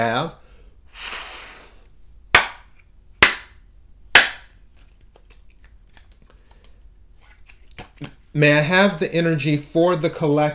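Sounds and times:
speech: 0.0 - 0.4, 8.4 - 10.5
Heaven and Earth tarot cards slapping: 4.2 - 8.3
Heaven and Earth tarot cards rustling in a shuffle: 4.7 - 8.4.

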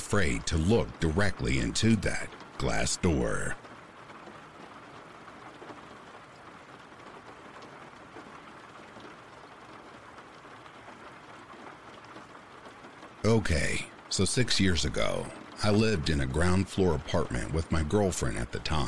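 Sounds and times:
rain: 0.0 - 18.8
speech: 0.1 - 3.7, 13.3 - 18.8.

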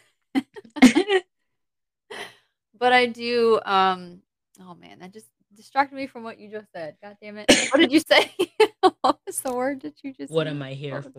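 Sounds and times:
person coughing: 0.8 - 1.2, 7.5 - 8.0
speech: 2.8 - 11.1.

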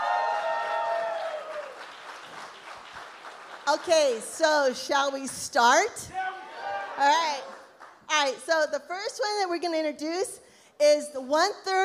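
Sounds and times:
audience applause: 0.0 - 3.9
speech: 3.7 - 6.2, 7.0 - 7.5, 8.1 - 11.8.

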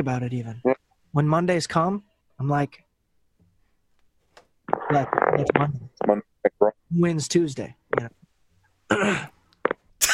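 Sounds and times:
speech: 0.0 - 2.8, 4.7 - 8.2, 8.9 - 9.4
throat clearing: 8.9 - 9.4.

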